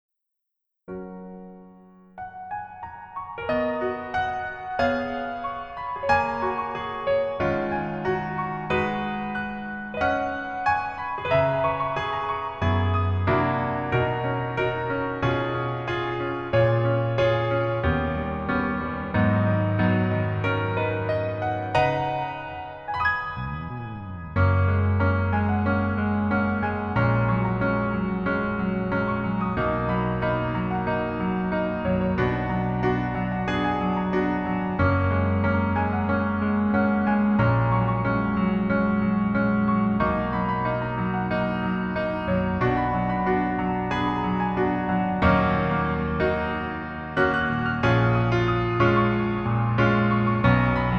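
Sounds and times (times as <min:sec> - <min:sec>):
piano melody backing track: 0:00.9 - 0:50.9.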